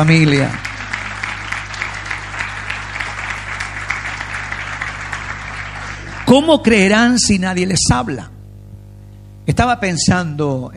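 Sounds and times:
speech: 0:00.0 - 0:00.7, 0:06.3 - 0:08.3, 0:09.5 - 0:10.7
audience applauding: 0:00.0 - 0:07.0
low steady hum: 0:00.0 - 0:10.7.

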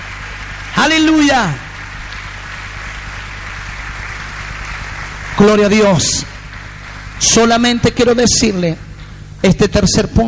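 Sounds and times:
audience applause: 0:00.0 - 0:07.8
speech: 0:00.8 - 0:01.7, 0:05.4 - 0:06.3, 0:07.2 - 0:08.8, 0:09.4 - 0:10.2.

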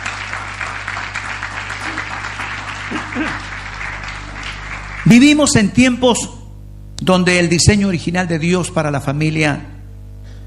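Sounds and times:
audience applause: 0:00.0 - 0:05.6
speech: 0:02.9 - 0:03.5, 0:05.0 - 0:06.4, 0:07.1 - 0:09.8.

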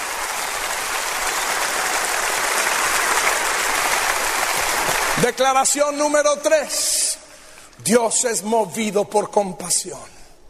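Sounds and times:
audience applause: 0:00.0 - 0:05.7
speech: 0:05.2 - 0:07.0, 0:07.8 - 0:10.2.

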